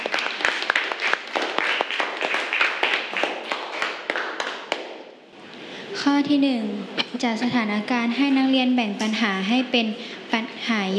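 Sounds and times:
classroom students clapping: 0.0 - 5.1
speech: 6.0 - 10.9.

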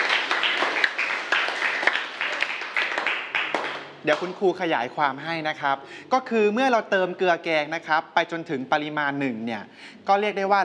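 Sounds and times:
students clapping: 0.0 - 4.4
speech: 4.0 - 10.6.

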